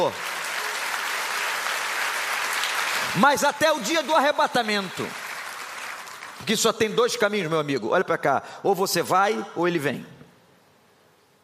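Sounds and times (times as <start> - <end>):
speech: 0.0 - 0.3, 3.1 - 5.2, 6.4 - 10.2
church congregation applauding during a sermon: 0.0 - 7.0.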